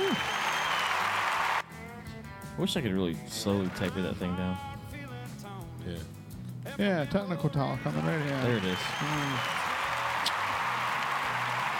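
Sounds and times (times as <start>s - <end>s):
bright whistle or shout: 0.0s - 1.6s, 8.6s - 10.4s
crowd applause: 0.0s - 1.6s, 7.9s - 11.7s
speech: 2.6s - 4.7s, 5.8s - 9.6s.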